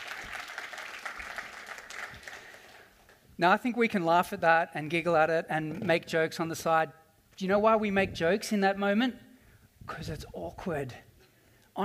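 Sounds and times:
audience applause: 0.0s - 3.0s
speech: 3.4s - 9.2s, 9.9s - 11.1s.

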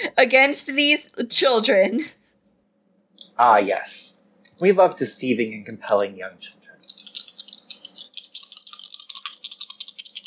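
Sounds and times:
speech: 0.0s - 2.2s, 3.4s - 6.8s
dice being rolled: 6.8s - 10.2s.

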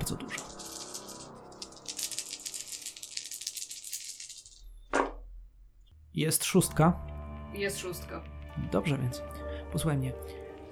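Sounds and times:
speech: 0.1s - 0.4s, 6.2s - 10.4s
dice rolling: 0.2s - 5.2s.

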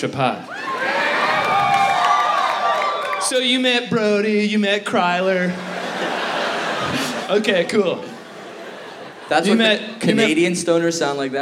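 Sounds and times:
speech: 0.0s - 0.5s, 3.2s - 5.7s, 6.8s - 8.1s, 9.3s - 11.4s
live audience applause and cheering: 0.5s - 3.6s
laughter: 5.3s - 10.6s.

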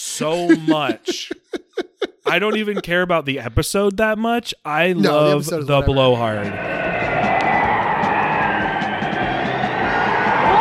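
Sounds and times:
laughter: 0.0s - 3.8s, 4.7s - 6.6s
speech: 0.2s - 1.6s, 2.3s - 7.0s
strong gust of wind: 6.4s - 10.5s.

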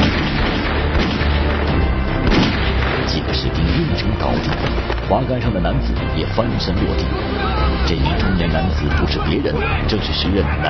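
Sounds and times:
gunshots: 0.0s - 4.9s
speech: 5.3s - 10.6s.

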